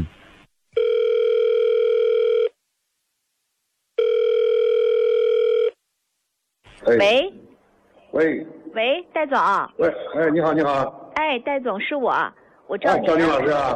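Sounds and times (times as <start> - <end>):
ringback tone of an outgoing call from a mobile phone: 0.8 - 2.6, 4.0 - 5.8
speech: 6.9 - 7.4, 8.2 - 13.7.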